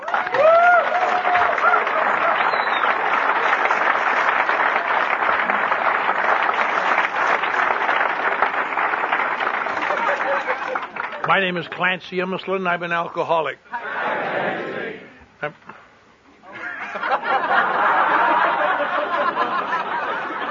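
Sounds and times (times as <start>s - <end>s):
audience applause welcoming a speaker to the stage: 0.0s - 11.8s, 17.0s - 20.4s
laughter: 1.6s - 2.7s, 9.6s - 11.3s, 13.0s - 15.1s, 16.4s - 20.4s
whistles: 2.4s - 3.0s
speech: 11.3s - 13.7s.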